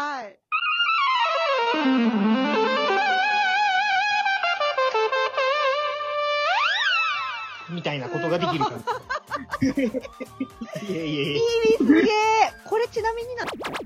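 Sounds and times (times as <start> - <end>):
EWI electronic wind instrument melody: 0.5 - 7.7
laughter: 7.9 - 12.4
speech: 8.3 - 13.8.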